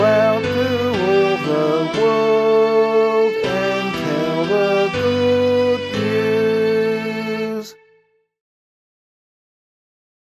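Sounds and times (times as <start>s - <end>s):
psalm in C sung by voice: 0.0s - 7.8s.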